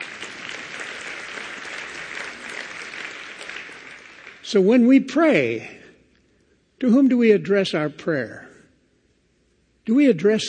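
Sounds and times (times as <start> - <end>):
audience applause: 0.0 - 4.6
speech: 4.5 - 5.8, 6.8 - 8.5, 9.9 - 10.4.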